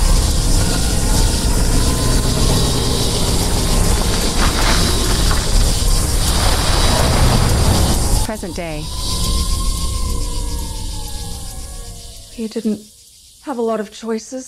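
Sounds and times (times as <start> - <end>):
mechanical rattling of truck: 0.0 - 8.4
truck engine roar: 0.0 - 12.2
speech: 8.4 - 9.2, 12.4 - 14.4.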